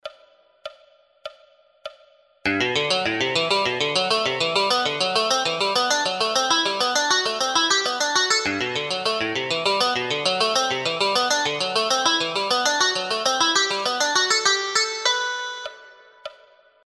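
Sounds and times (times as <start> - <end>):
scales and four-note chords: 2.5 - 15.8.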